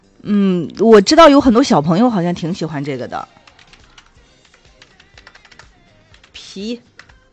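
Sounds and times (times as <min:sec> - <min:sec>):
speech: 0:00.2 - 0:03.4, 0:06.6 - 0:06.9
faint typing of a search on a computer keyboard: 0:03.3 - 0:07.3.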